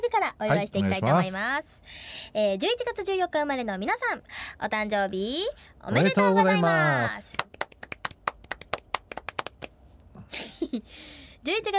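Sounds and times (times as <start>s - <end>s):
speech: 0.2s - 7.5s, 10.3s - 11.7s
sparse light handclapping: 7.3s - 9.8s.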